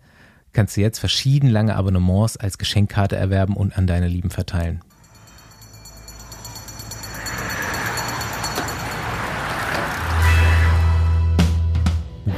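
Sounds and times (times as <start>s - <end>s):
speech: 0.6s - 4.9s
riding inside a moving bus: 5.0s - 11.2s.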